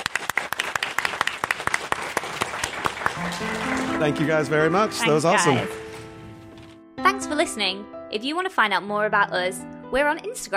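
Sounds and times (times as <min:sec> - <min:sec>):
audience applause: 0:00.0 - 0:06.0
speech: 0:03.4 - 0:05.8, 0:07.2 - 0:10.5.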